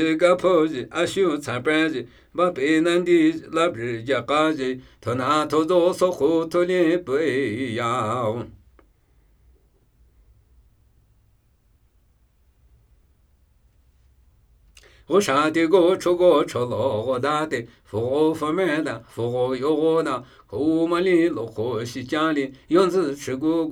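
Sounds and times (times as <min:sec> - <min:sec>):
Namuyi Tibetan ritual chanting: 0:00.0 - 0:08.7, 0:14.8 - 0:23.6.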